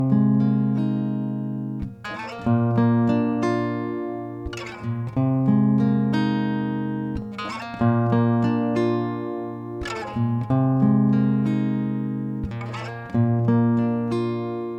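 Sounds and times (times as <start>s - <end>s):
dry old strings guitar arpeggios in F: 0.0s - 14.7s.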